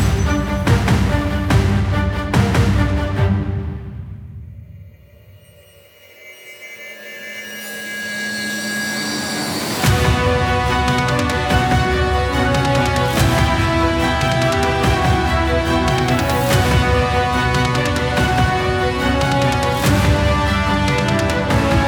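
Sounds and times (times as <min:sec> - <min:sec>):
epic hybrid underscore music: 0:00.0 - 0:21.8.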